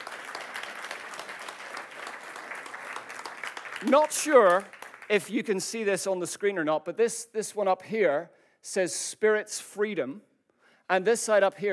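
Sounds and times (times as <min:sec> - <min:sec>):
audience round of applause: 0:00.0 - 0:05.1
speech: 0:03.8 - 0:10.3, 0:10.9 - 0:11.7.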